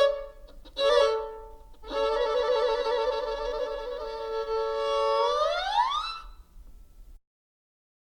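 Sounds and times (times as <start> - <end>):
two violins playing in a radio concert at an auditorium in Stains: 0.0 - 6.3.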